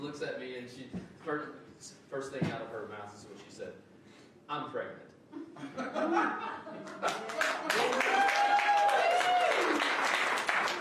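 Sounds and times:
speech: 0.0 - 3.9, 4.5 - 8.7
laughter: 5.4 - 8.0
audience clapping: 6.8 - 10.8.

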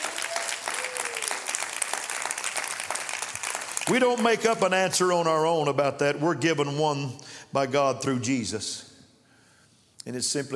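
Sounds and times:
hands clapping: 0.0 - 4.8
speech: 3.9 - 8.9, 10.0 - 10.5.

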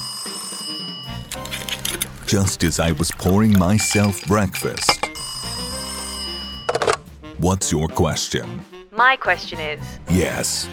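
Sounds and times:
telephone ringing: 0.0 - 1.9, 3.8 - 7.1
speech: 2.3 - 5.0, 7.4 - 10.7.

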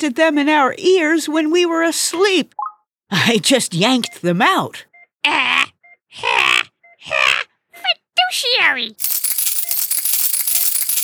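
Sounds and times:
speech: 0.0 - 7.3, 7.9 - 9.1
shower of dimes clattering after a sneeze: 9.0 - 11.0.

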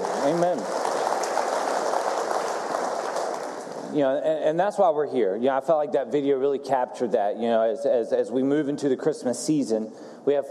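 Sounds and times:
audience applause: 0.0 - 4.0
speech: 0.2 - 0.8, 3.9 - 10.5.

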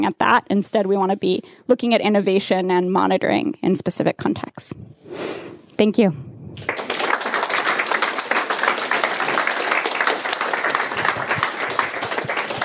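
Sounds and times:
speech: 0.0 - 6.8
audience applause for the five speakers: 6.6 - 12.6.

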